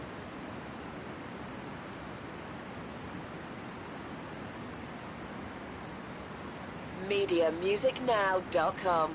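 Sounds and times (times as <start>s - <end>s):
crickets chirping: 0.0s - 8.0s.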